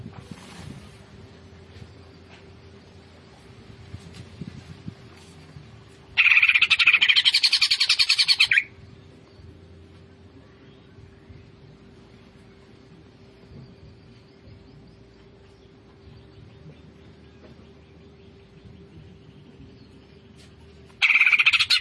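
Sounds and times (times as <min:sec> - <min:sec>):
Greater green leafbird singing fast chattering notes: 0:06.1 - 0:09.7, 0:10.3 - 0:21.7.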